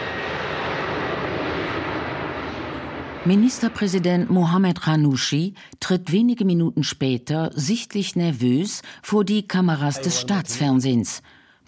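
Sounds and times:
presidential airplane taking off from Tunis airport: 0.0 - 5.2
speech: 3.2 - 11.6.

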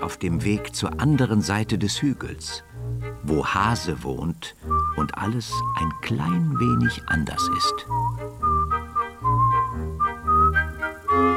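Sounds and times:
speech: 0.0 - 8.2
cheerful whistled melody: 4.6 - 11.3.

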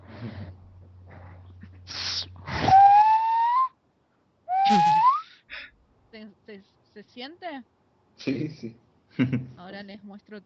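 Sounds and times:
speech: 0.2 - 0.4, 7.1 - 10.4
nose whistle with airy sliding tones: 1.9 - 3.8, 4.5 - 5.4.

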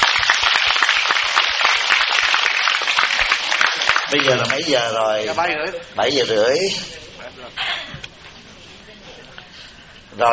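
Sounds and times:
audience applause: 0.0 - 5.0
speech: 4.1 - 7.8, 10.2 - 10.3.

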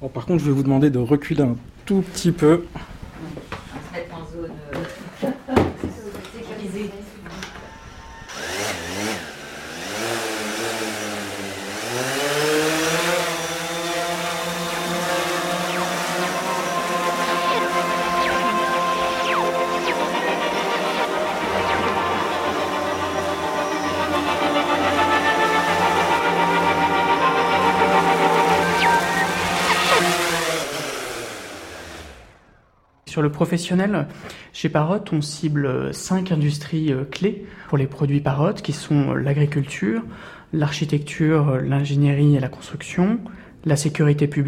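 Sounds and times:
speech: 0.0 - 2.9, 33.4 - 44.4
camera drone rotors buzzing: 7.6 - 33.0
camera drone clicks: 13.7 - 30.7.

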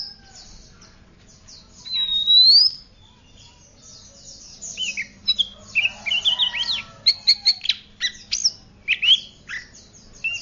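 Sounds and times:
Oriental magpie-robin whistling: 1.8 - 3.4, 4.6 - 10.4.

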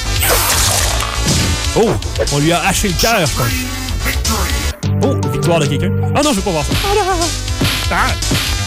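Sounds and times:
arrow shot in a video game: 0.2 - 1.8
video game combat sounds with swishes and impacts: 0.2 - 2.3
speech: 1.8 - 8.6.

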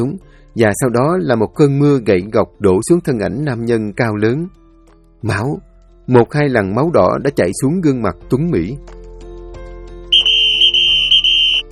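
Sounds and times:
speech: 0.0 - 4.6, 5.2 - 9.0
security guard blowing a loud shrill whistle: 10.1 - 11.7.

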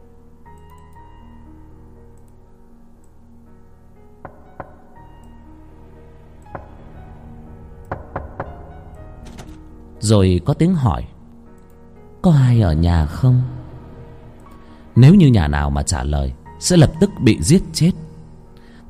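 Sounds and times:
knocking on a door: 4.3 - 5.0, 6.5 - 6.9, 7.9 - 9.6
speech: 10.1 - 11.2, 12.2 - 13.6, 15.0 - 18.0.

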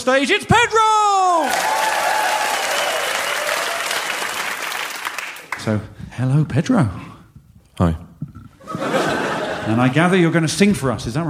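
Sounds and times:
speech: 0.0 - 2.0, 5.6 - 7.1, 7.8 - 8.3, 9.7 - 11.2
whoops and cheers: 1.1 - 4.4
crowd clapping: 1.4 - 5.8
laughter: 8.6 - 10.7.

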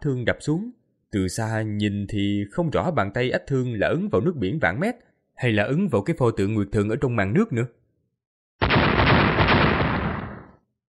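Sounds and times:
speech: 0.0 - 7.8
continuous thunderous explosions: 8.6 - 10.6.

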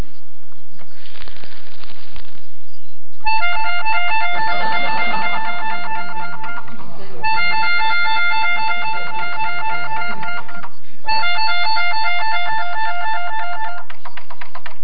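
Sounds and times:
melodica playing convenience store entrance chime: 3.3 - 13.9.

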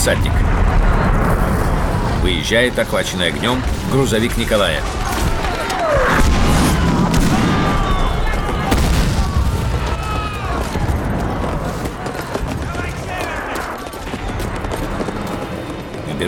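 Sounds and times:
speech: 0.0 - 0.7, 2.2 - 5.0
artillery shells falling and exploding around a fortress: 0.0 - 13.1
constant battle roar: 0.0 - 16.2
sharp cracks: 0.4 - 15.0
faint shouting voices: 4.6 - 15.8.

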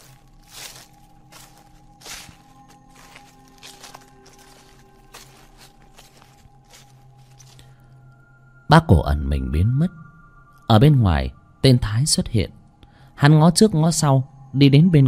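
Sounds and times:
footsteps crunching on dry rotting leaves: 0.0 - 7.8
speech: 8.7 - 10.0, 10.7 - 12.6, 13.2 - 15.0.

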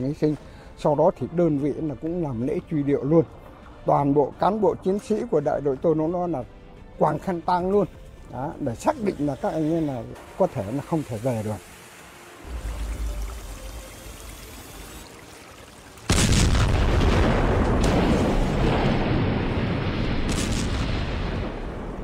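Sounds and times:
speech: 0.0 - 11.7
fuel depot explosion at Nhà Bè port in Saigon at night: 16.1 - 22.0.

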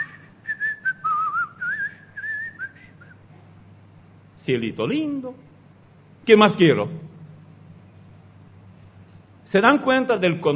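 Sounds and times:
person whistling a tune: 0.0 - 3.2
speech: 4.5 - 5.5, 6.3 - 7.1, 9.5 - 10.5.

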